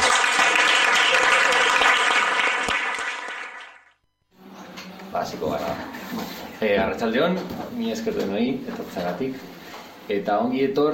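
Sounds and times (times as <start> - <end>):
crowd applause: 0.0 - 3.9
speech: 5.2 - 10.9.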